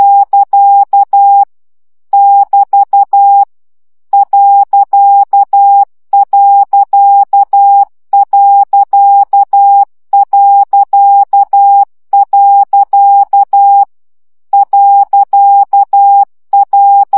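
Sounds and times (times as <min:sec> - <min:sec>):
morse code dots practice at 10 baud: 0:00.0 - 0:01.5, 0:02.2 - 0:03.5, 0:04.2 - 0:13.9, 0:14.6 - 0:17.1.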